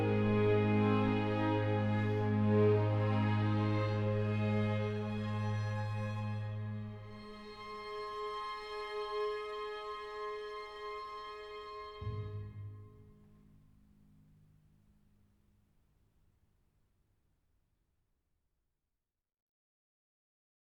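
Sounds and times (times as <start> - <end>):
string orchestra: 0.0 - 13.4.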